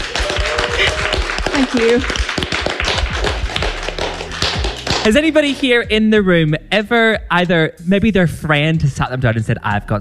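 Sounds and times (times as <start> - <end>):
person cheering: 0.0 - 2.1
audience applause: 0.0 - 5.1
speech: 1.6 - 2.5, 5.0 - 9.9.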